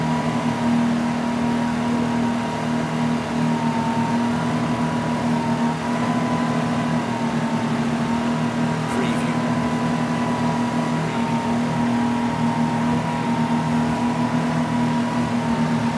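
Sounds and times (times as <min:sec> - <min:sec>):
motor boat engine during a ride: 0:00.0 - 0:15.9.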